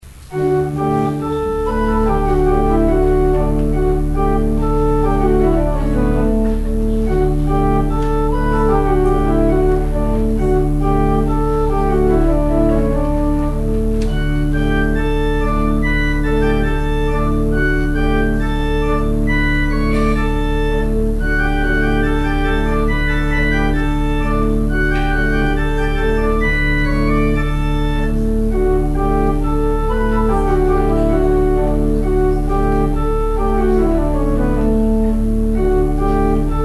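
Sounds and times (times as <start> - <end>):
gavotte in rondeau form: 0.0 - 36.6.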